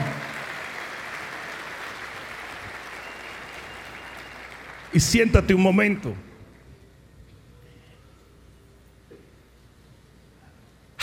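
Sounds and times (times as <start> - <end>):
audience applauding: 0.0 - 5.4
speech: 4.9 - 6.3.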